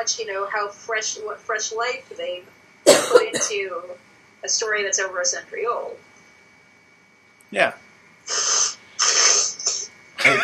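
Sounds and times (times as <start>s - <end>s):
speech: 0.0s - 6.1s, 7.5s - 8.5s
person blowing nose loudly: 8.3s - 9.5s.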